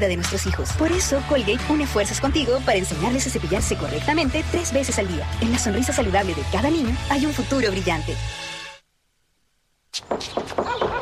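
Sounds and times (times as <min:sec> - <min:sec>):
speech: 0:00.0 - 0:08.4
knocking at a door: 0:10.1 - 0:11.0.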